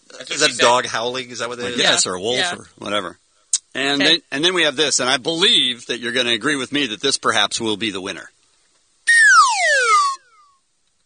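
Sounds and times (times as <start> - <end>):
speech: 0.2 - 8.4
slide whistle gliding down: 9.1 - 10.5.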